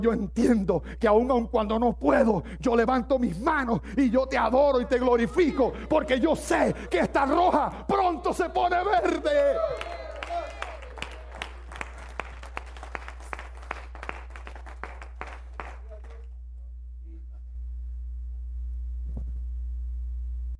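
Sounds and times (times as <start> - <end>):
speech: 0.0 - 10.0
low steady hum: 0.0 - 20.5
audience applause: 8.7 - 16.3.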